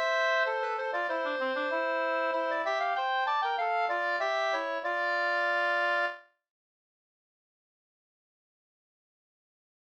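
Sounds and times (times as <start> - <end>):
two-part polska dance tune: 0.0 - 6.2.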